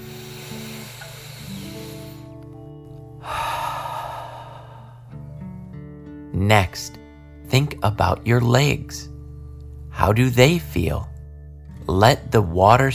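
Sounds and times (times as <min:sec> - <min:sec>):
deep breathing in and out: 0:00.0 - 0:02.4, 0:03.2 - 0:05.3
soft sustained musical tones: 0:00.0 - 0:12.9
speech: 0:06.4 - 0:09.1, 0:10.0 - 0:11.1, 0:11.9 - 0:12.9.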